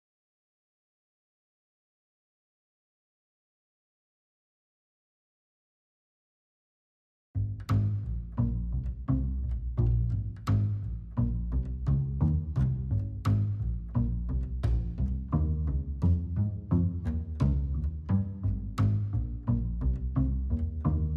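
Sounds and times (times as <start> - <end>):
clean bass: 7.4 - 21.1.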